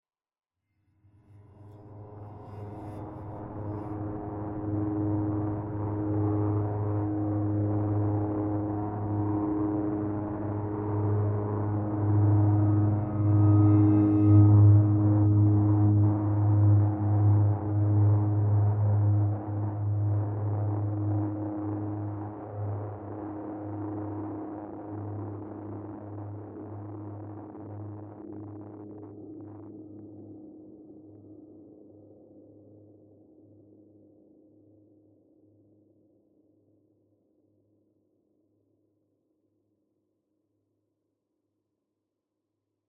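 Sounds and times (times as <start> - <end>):
suspense mood music: 1.4 - 23.2.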